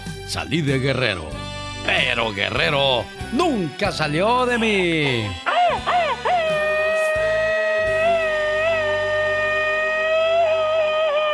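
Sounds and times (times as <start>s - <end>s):
speech: 0.1s - 5.9s
loud drawn-out Mexican grito: 5.4s - 11.3s.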